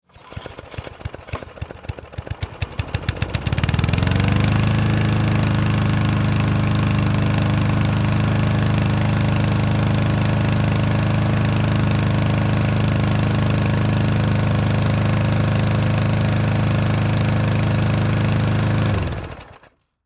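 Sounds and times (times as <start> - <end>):
industrial lawn mower pull start: 0.0 - 20.0.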